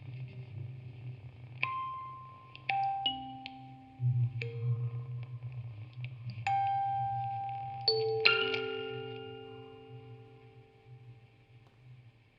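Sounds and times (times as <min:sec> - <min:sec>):
field recording ambience: 0:00.0 - 0:12.3
music box quartet playing: 0:01.7 - 0:05.4, 0:06.4 - 0:11.2.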